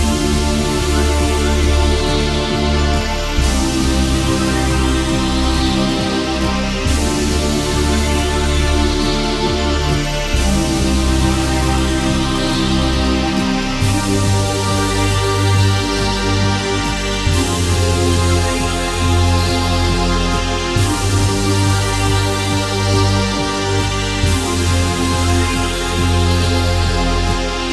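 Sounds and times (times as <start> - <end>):
strange fantasy game menu music: 0.0 - 27.7.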